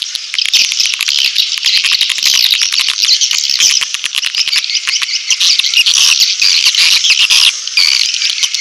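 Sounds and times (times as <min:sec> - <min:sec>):
swiftlets chirping in a dense twittering chorus: 0:00.2 - 0:08.5.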